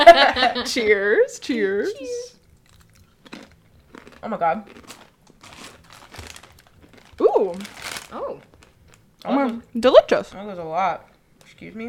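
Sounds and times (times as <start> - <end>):
speech: 0.1 - 2.4, 4.2 - 4.8, 7.2 - 8.5, 9.2 - 11.8
crunching plantain chips: 2.5 - 9.2.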